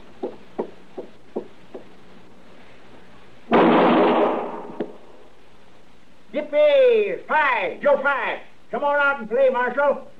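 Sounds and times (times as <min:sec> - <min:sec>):
gunshots fired in an alley: 0:03.5 - 0:05.0
speech: 0:07.3 - 0:10.1.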